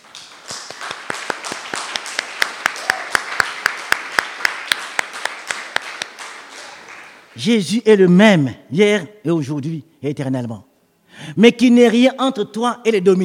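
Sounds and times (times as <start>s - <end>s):
congregation rhythmic clapping at a church service: 0.0s - 7.5s
speech: 7.4s - 13.2s.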